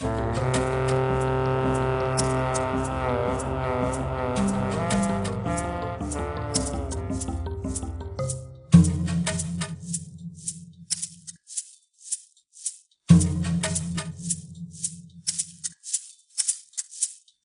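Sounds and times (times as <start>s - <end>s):
jungle level music: 0.0s - 11.3s, 13.1s - 15.6s.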